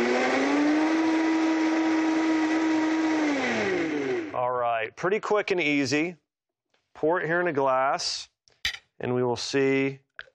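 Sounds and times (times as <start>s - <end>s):
blender blending a chocolate drink: 0.0s - 4.4s
speech: 4.9s - 6.2s, 7.0s - 8.3s, 9.0s - 10.0s.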